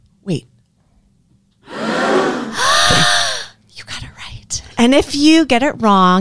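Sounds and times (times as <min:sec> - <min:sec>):
speech: 0:00.2 - 0:00.5, 0:04.9 - 0:06.1
gasp sound effect: 0:01.7 - 0:03.6.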